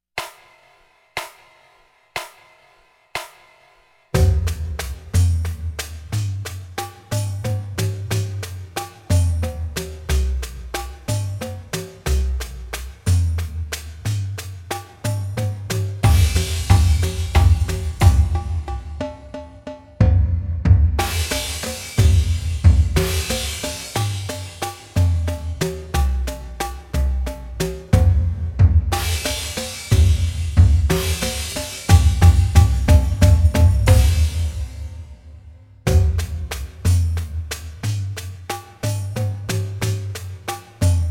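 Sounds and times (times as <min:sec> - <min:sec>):
slow drumline: 0:00.2 - 0:35.3, 0:35.9 - 0:41.0.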